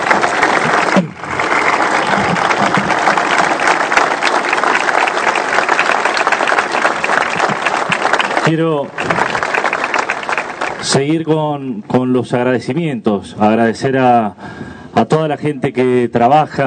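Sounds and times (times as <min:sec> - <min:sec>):
audience applause: 0:00.0 - 0:11.0
speech: 0:08.5 - 0:09.2, 0:10.8 - 0:16.6.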